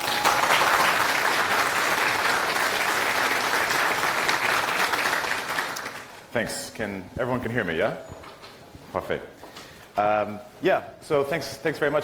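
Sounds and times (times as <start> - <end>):
audience applause welcoming a speaker at a programming conference: 0.0 - 6.2
speech: 6.4 - 8.2, 8.9 - 9.4, 10.0 - 12.0.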